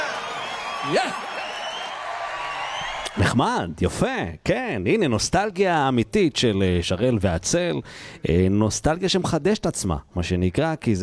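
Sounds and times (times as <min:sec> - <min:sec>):
audience applause: 0:00.0 - 0:03.2
speech: 0:00.8 - 0:01.4, 0:03.1 - 0:11.0.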